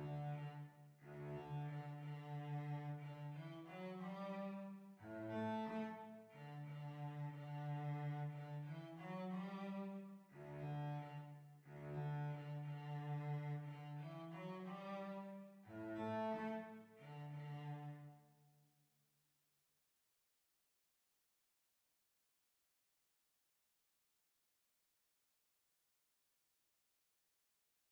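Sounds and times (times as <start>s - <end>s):
violoncello: 0.0s - 18.4s.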